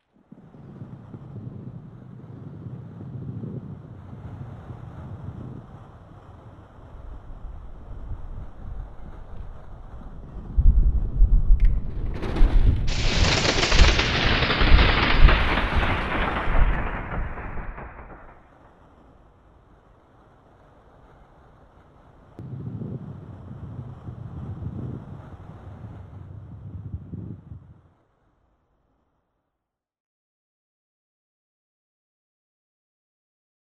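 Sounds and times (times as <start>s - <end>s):
thunder: 0.2s - 5.8s, 7.2s - 20.1s, 22.4s - 27.8s.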